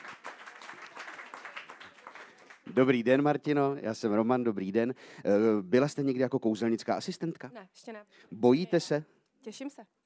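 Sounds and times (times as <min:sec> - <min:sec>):
audience applause for a volunteer at a magic show: 0:00.0 - 0:02.7
speech: 0:02.7 - 0:10.0.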